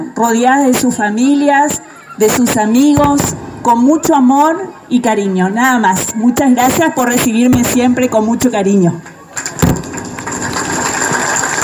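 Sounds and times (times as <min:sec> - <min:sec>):
speech: 0:00.2 - 0:09.1
applause: 0:09.0 - 0:11.6.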